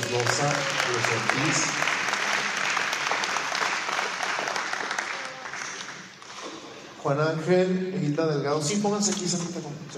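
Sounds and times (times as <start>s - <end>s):
loud audience applause: 0.0s - 6.3s
speech: 0.1s - 1.9s, 7.0s - 9.9s.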